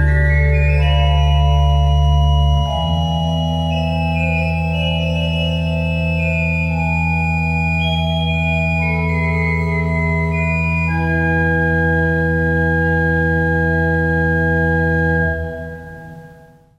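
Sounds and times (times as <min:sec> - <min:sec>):
organ piece with tierce en bas dessus registration: 0:00.0 - 0:16.7.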